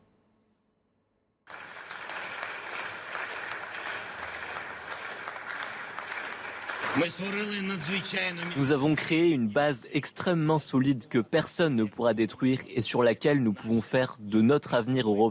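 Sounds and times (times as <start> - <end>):
lawmakers applauding in parliament: 1.5 - 9.3
speech: 7.0 - 15.2.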